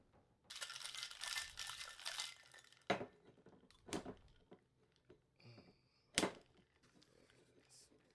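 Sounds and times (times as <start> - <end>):
cocktail being shaken in a shaker: 0.5 - 2.9.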